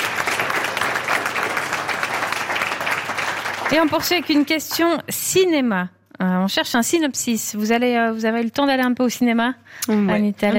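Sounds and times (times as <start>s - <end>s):
studio audience applause: 0.0s - 4.6s
speech: 3.7s - 10.5s.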